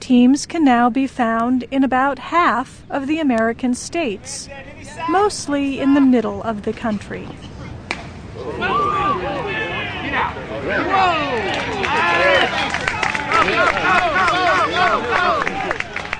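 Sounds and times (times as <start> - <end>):
speech: 0.1 - 7.5
baseball crowd cheering and shouting: 8.4 - 16.1.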